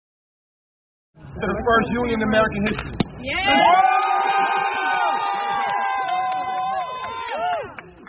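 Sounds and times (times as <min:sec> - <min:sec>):
speech: 0:01.4 - 0:05.3
Amazon warehouse workers cheering after voting to unionize: 0:03.2 - 0:08.0.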